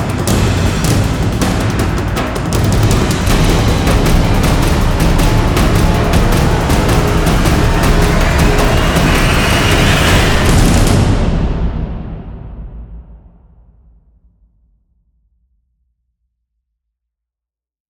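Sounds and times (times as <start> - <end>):
drums: 0.0 - 13.6.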